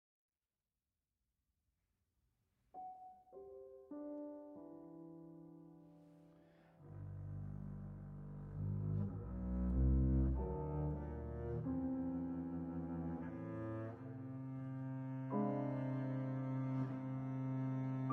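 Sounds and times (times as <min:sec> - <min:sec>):
piano: 0:02.8 - 0:18.1
double bass: 0:06.8 - 0:18.1.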